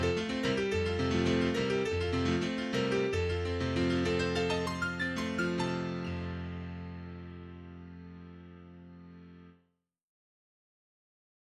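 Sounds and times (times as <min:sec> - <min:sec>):
prelude in F major: 0:00.0 - 0:08.6.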